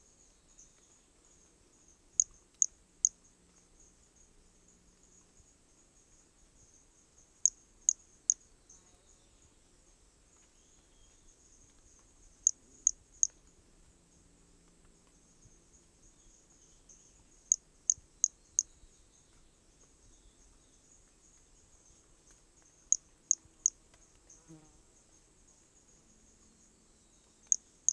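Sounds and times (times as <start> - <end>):
continuous insect hum: 0.0 - 27.9
Hermogenes' pumpkin toadlet calling: 12.4 - 13.4, 16.2 - 18.9, 27.5 - 27.9.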